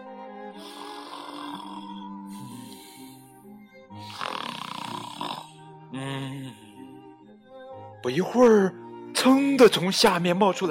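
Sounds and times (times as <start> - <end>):
frog snoring during a nap: 0.5 - 6.8
speech: 5.9 - 6.6, 8.0 - 10.6.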